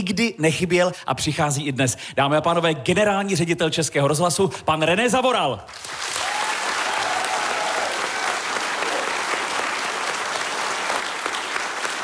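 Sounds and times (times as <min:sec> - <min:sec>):
speech: 0:00.0 - 0:06.3
audience applauding: 0:05.7 - 0:12.0.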